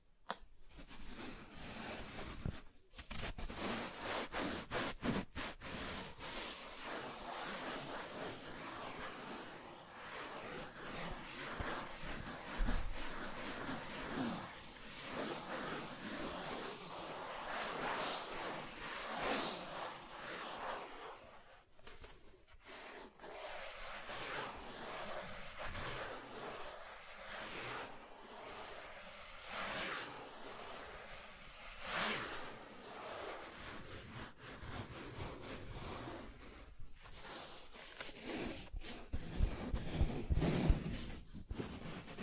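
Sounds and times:
soft tracing across smooth and rough surfaces: 0.6s - 42.2s.

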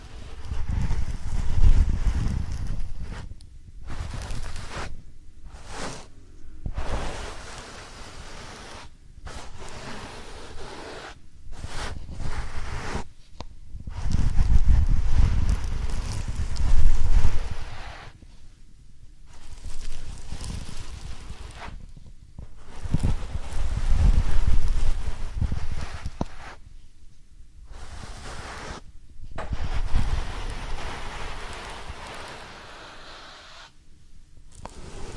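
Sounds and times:
gentle rubbing and brushing in a soft powder ear massage: 0.0s - 33.8s, 34.4s - 35.1s.

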